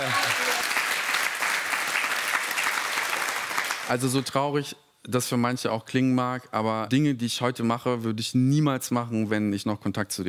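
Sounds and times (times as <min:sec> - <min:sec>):
audience applause: 0:00.0 - 0:04.2
speech: 0:03.9 - 0:10.2.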